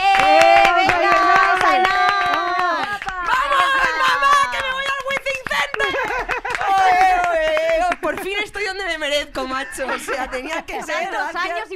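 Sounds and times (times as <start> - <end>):
audience applause: 0.0 - 8.3
laughter: 3.1 - 7.3, 9.4 - 11.7
speech: 9.8 - 11.7.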